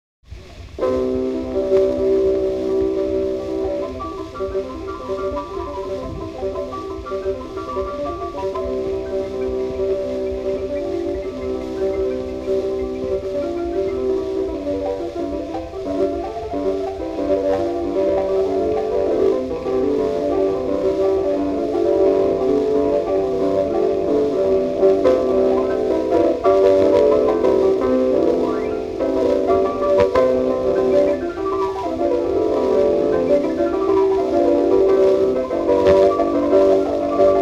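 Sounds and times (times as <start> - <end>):
rhapsody in C major: 0.3 - 37.3.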